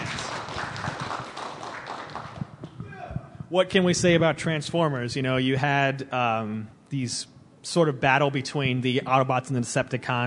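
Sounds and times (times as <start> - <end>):
audience clapping: 0.0 - 2.8
speech: 3.5 - 10.2.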